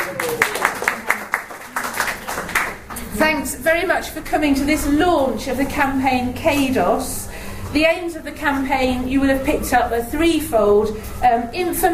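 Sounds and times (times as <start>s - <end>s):
audience clapping: 0.0s - 3.0s
speech: 3.1s - 11.9s.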